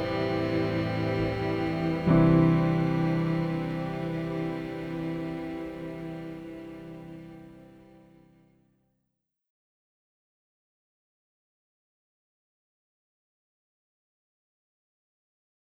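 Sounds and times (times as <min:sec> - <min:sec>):
piano: 0:00.0 - 0:08.2
strings: 0:00.0 - 0:08.2.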